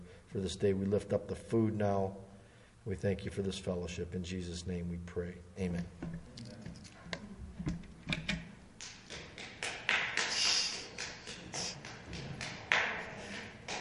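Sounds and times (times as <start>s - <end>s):
speech: 0.3s - 6.5s
hand claps: 8.8s - 13.7s.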